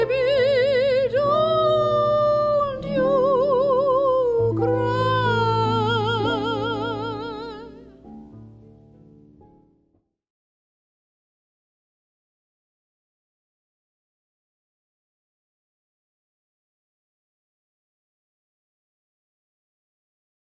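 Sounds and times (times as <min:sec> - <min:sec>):
soprano singing: 0:00.0 - 0:08.4
harp: 0:00.0 - 0:09.8.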